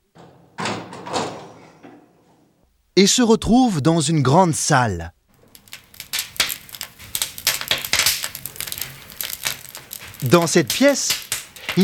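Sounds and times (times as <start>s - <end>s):
door being pushed open: 0.0s - 2.1s
speech: 3.0s - 5.2s, 10.2s - 11.2s.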